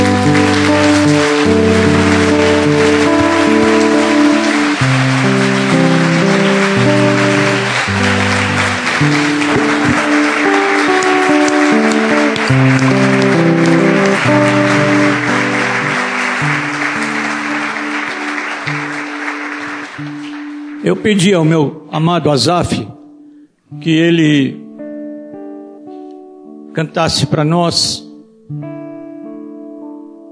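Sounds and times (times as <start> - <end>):
crowd applause: 0.0 - 21.5
sustained keyboard chords: 0.0 - 30.3
speech: 21.0 - 23.0, 23.8 - 24.6, 26.8 - 28.7.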